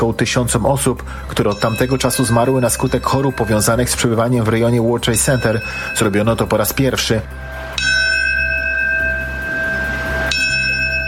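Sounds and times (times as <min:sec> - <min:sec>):
speech: 0:00.0 - 0:07.9
memorial bell tolling: 0:01.3 - 0:11.0.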